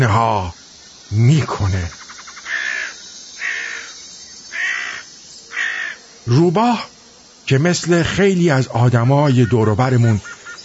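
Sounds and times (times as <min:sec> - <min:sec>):
speech: 0:00.0 - 0:02.0, 0:06.3 - 0:06.9, 0:07.5 - 0:10.4
crows cawing: 0:01.9 - 0:06.1, 0:09.2 - 0:10.6.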